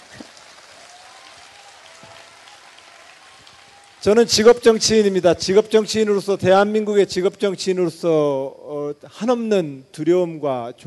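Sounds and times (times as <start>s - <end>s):
audience applause: 0.0s - 4.8s
speech: 4.0s - 10.8s.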